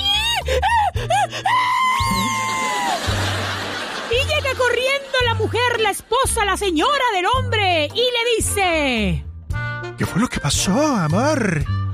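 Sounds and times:
voice imitating a small child crying: 0:00.0 - 0:03.0
laughter: 0:02.0 - 0:06.2
speech: 0:05.5 - 0:09.2, 0:10.0 - 0:11.8.

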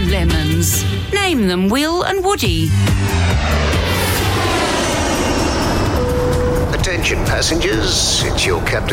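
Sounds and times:
speech: 0:00.1 - 0:03.9, 0:06.8 - 0:08.9
airplane engine sound effect in a radio ad: 0:02.4 - 0:08.9.

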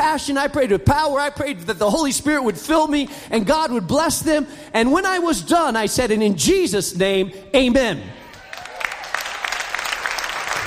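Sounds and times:
speech: 0:00.2 - 0:08.2
audience clapping: 0:08.2 - 0:10.6.

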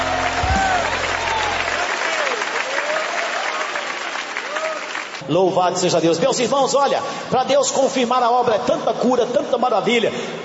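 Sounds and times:
church congregation clapping in praise during a worship service: 0:00.0 - 0:05.2
speech: 0:05.3 - 0:10.4.

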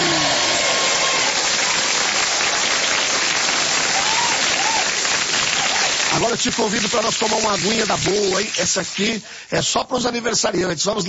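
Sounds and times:
applause: 0:00.0 - 0:09.2
speech: 0:06.2 - 0:11.0.

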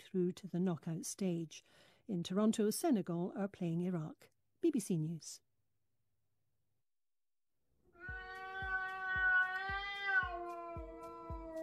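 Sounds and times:
speech: 0:00.0 - 0:05.4
cat yowling: 0:08.0 - 0:11.6.

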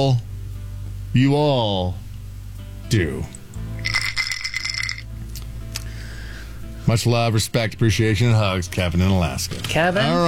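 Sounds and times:
speech: 0:00.0 - 0:00.3, 0:01.1 - 0:02.0, 0:02.9 - 0:03.4, 0:06.9 - 0:10.2
ice cubes rattling in a rocks glass: 0:03.8 - 0:05.1.

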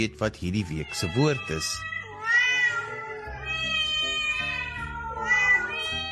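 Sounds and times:
speech: 0:00.0 - 0:01.9
cat meowing: 0:00.7 - 0:06.1.

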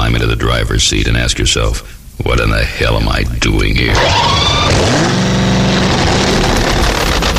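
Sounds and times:
speech: 0:00.2 - 0:05.4
2,000-horsepower supercharged drag racing engine revving: 0:03.8 - 0:07.3.

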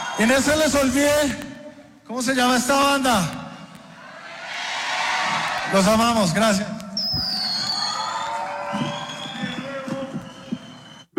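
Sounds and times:
large audience cheering and whooping: 0:00.0 - 0:00.8, 0:03.9 - 0:06.3, 0:07.0 - 0:11.0
speech: 0:00.2 - 0:01.5, 0:02.1 - 0:03.4, 0:05.7 - 0:06.8
sustained audience applause: 0:04.6 - 0:06.3, 0:07.4 - 0:11.1.

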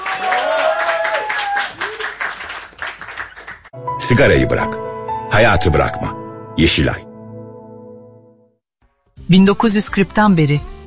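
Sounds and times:
audience applause: 0:00.0 - 0:03.7
speech: 0:04.1 - 0:07.1, 0:09.3 - 0:10.7.

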